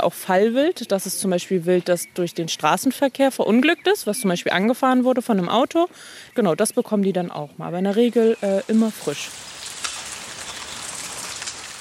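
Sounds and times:
speech: 0.0 - 9.6
light drizzling rain: 8.3 - 11.7.

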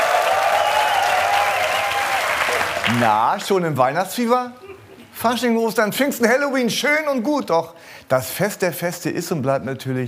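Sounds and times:
studio audience applause: 0.0 - 3.5
speech: 2.9 - 4.6, 5.2 - 10.0.

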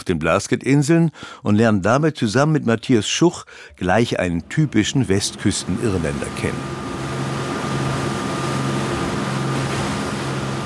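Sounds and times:
speech: 0.0 - 7.0
small charter boat ploughing through grey Atlantic waves: 5.1 - 10.6.

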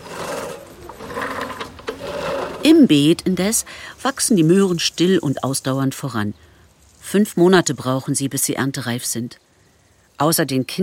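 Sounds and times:
crickets chirping in unmown corners: 0.0 - 10.8
speech: 2.7 - 6.5, 7.1 - 9.5, 10.2 - 10.8.

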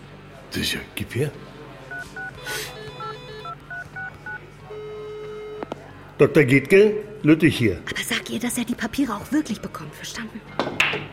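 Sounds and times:
speech: 0.5 - 1.6, 6.2 - 11.1
touch-tone keypad beeps dialing a phone number: 1.9 - 5.7.

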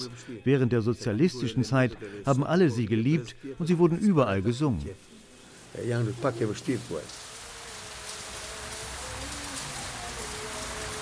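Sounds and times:
speech: 0.0 - 5.1, 5.7 - 7.2
short burst of a voice: 0.0 - 7.2
heavy raindrops falling from slate roofs: 4.8 - 11.0.

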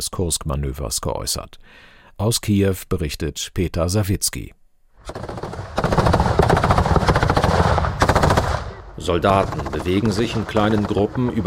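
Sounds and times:
speech: 0.0 - 5.4, 9.0 - 11.4
machine gun fire: 5.0 - 11.4.

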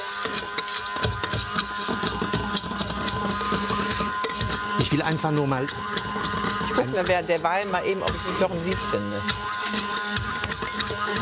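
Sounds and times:
blender motor pureeing food: 0.0 - 11.1
speech: 5.0 - 9.4.

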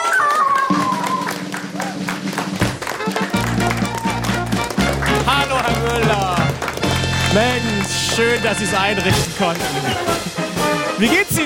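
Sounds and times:
crowd applauding: 0.0 - 10.8
loud musical jingle: 4.7 - 11.2
speech: 7.4 - 11.4.

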